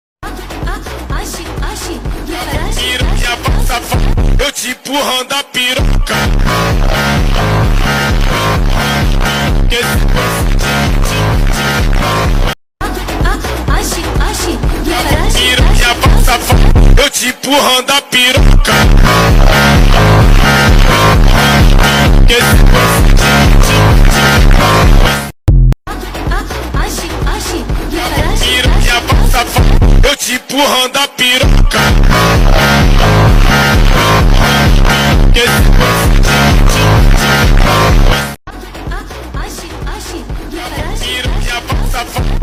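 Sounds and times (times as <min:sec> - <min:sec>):
phonk music: 0:00.2 - 0:42.4.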